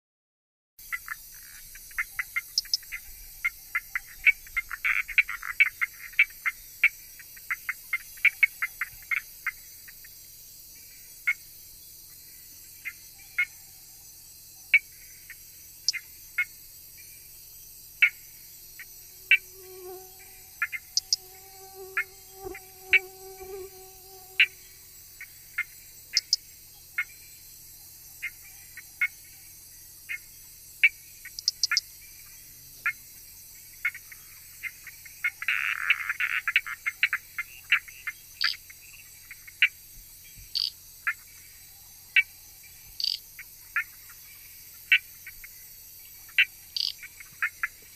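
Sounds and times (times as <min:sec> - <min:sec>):
frogs: 0:00.8 - 0:47.9
insects: 0:00.8 - 0:47.9.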